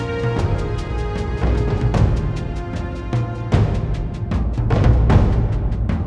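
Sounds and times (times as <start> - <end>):
light soft rain: 0.0 - 5.1
saxophone: 0.0 - 5.1
creepy music: 0.0 - 5.9.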